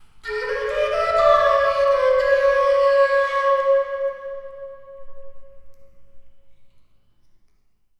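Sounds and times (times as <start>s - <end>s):
flute: 0.2s - 6.3s.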